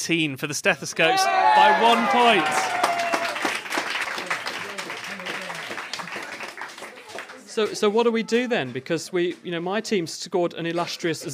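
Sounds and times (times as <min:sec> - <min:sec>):
speech: 0:00.0 - 0:03.0, 0:07.6 - 0:11.3
audience cheering and applauding: 0:01.0 - 0:07.5.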